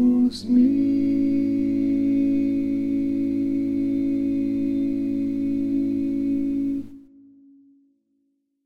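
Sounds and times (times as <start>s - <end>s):
barbershop lead singing: 0.0s - 6.9s.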